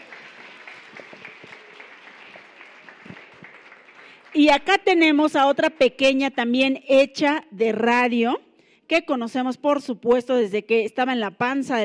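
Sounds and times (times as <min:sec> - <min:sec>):
applause: 0:00.0 - 0:06.0
speech: 0:04.3 - 0:11.8.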